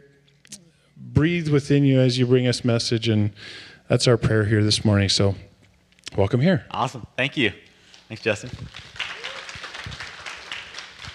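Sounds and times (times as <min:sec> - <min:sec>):
speech: 0:01.2 - 0:05.5, 0:06.2 - 0:08.9
crowd clapping: 0:07.9 - 0:11.1.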